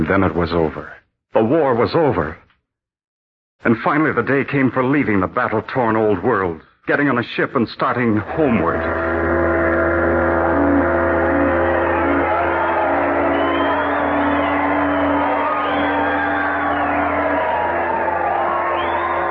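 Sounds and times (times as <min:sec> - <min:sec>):
speech: 0:00.1 - 0:02.4, 0:03.6 - 0:09.1
crowd shouting and cheering: 0:08.4 - 0:19.2.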